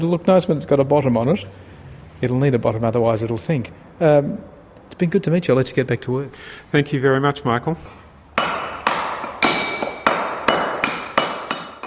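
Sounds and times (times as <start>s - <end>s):
speech: 0.0s - 8.0s
stonemason's hammer tapping stone: 8.4s - 11.8s.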